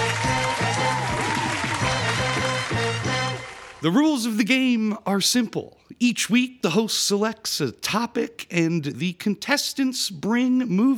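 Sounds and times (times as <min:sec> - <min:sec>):
crowd noise: 0:00.0 - 0:03.4
applause: 0:00.0 - 0:03.8
speech: 0:03.8 - 0:10.9.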